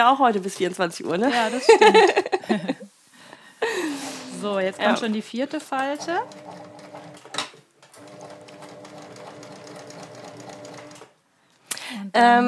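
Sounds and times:
speech: 0.0 - 2.9, 3.6 - 6.5, 12.0 - 12.4
laughter: 1.3 - 2.9
sewing machine stitching: 5.8 - 11.1.

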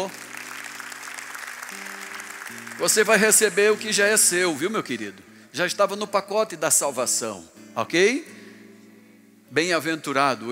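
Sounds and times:
speech: 0.0 - 0.2, 2.5 - 8.4, 9.5 - 10.4
audience applauding: 0.0 - 4.4.

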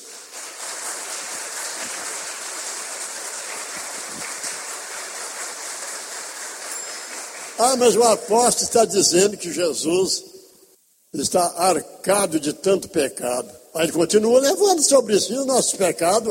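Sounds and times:
audience applauding: 0.0 - 8.2
speech: 7.6 - 10.3, 11.1 - 16.2.

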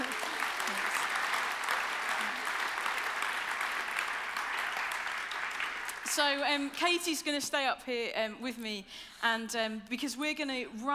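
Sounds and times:
audience applause: 0.0 - 6.4
speech: 6.1 - 10.9.

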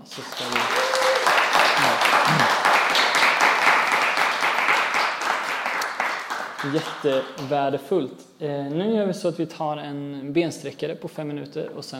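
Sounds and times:
speech: 0.0 - 0.7, 6.6 - 11.9
audience applause: 0.0 - 7.5.

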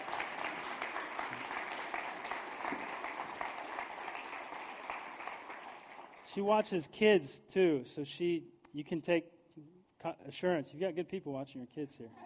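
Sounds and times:
audience applause: 0.0 - 6.3
speech: 6.4 - 12.2.

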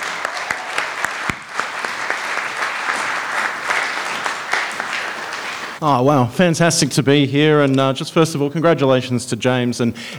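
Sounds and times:
audience applause: 0.0 - 7.7
laughter: 0.0 - 10.1
speech: 5.8 - 10.1.

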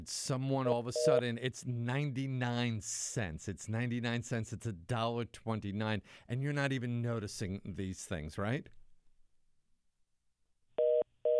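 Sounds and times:
speech: 0.0 - 8.8
telephone line tone after a caller's line drops on a call-in show: 0.9 - 1.2, 10.8 - 11.3.

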